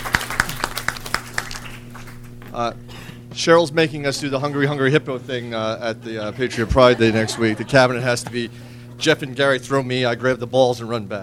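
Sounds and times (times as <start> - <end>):
sparse applause hand claps: 0.0 - 2.3
speech: 2.6 - 11.2
laughter: 6.1 - 8.6.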